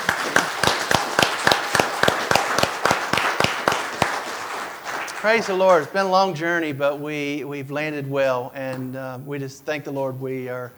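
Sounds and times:
applause: 0:00.0 - 0:06.4
laughter: 0:00.0 - 0:10.7
speech: 0:05.2 - 0:10.7.

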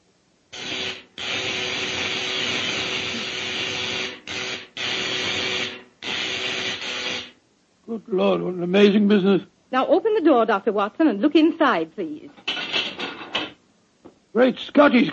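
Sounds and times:
electrical generator running: 0:00.5 - 0:07.4
speech: 0:08.0 - 0:12.5, 0:14.3 - 0:15.1.

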